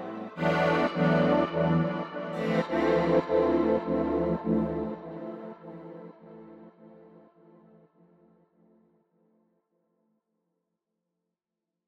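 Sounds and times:
chords: 0:00.0 - 0:06.4.

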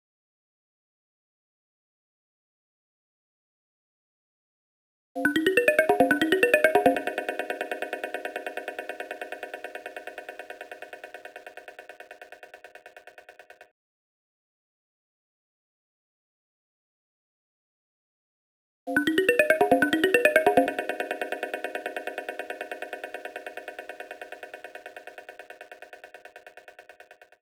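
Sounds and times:
synth: 0:05.2 - 0:11.1, 0:19.0 - 0:25.6.

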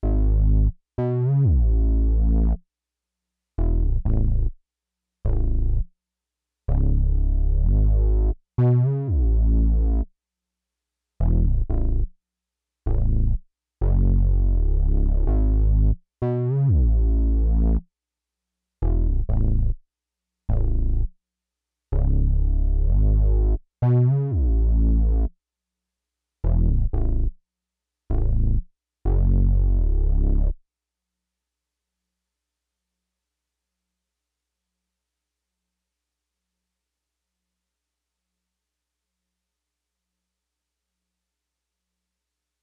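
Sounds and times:
bassline: 0:00.0 - 0:02.6, 0:03.6 - 0:04.6, 0:05.2 - 0:05.9, 0:06.7 - 0:10.1, 0:11.2 - 0:12.1, 0:12.8 - 0:17.8, 0:18.8 - 0:19.8, 0:20.5 - 0:21.1, 0:21.9 - 0:25.4, 0:26.4 - 0:27.4, 0:28.1 - 0:30.6.

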